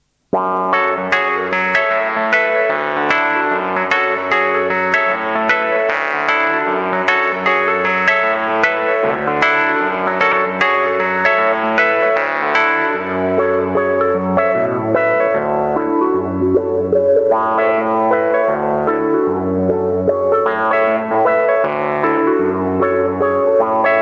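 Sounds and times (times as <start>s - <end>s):
Nord Wurlitzer electric piano: 0.3s - 24.0s.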